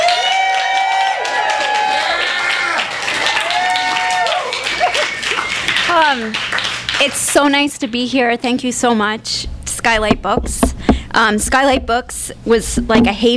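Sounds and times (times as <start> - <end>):
applause from a bookstore audience welcoming an author: 0.0 - 7.0
speech: 6.0 - 13.3.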